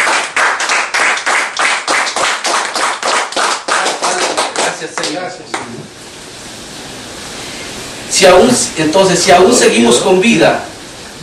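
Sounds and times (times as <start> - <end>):
group applause: 0.0 - 5.7
speech: 5.1 - 5.8, 8.2 - 10.7.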